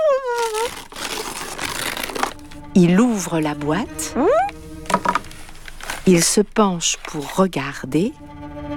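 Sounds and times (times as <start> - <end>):
blue star-patterned wrapping paper tearing: 0.0 - 7.8
speech: 2.8 - 4.5, 6.1 - 8.4
high wavering tone: 4.1 - 4.6.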